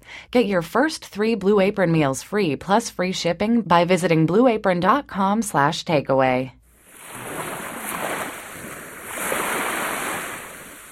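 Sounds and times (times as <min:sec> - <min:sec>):
speech: 0:00.3 - 0:06.6
ocean waves crashing on the shore: 0:06.8 - 0:10.9.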